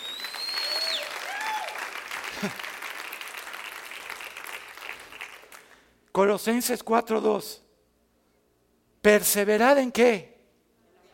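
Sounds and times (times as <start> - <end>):
thin whistle-like tones: 0.0 - 1.2
audience clapping: 0.0 - 6.0
speech: 2.4 - 2.7, 6.2 - 7.6, 9.0 - 10.3.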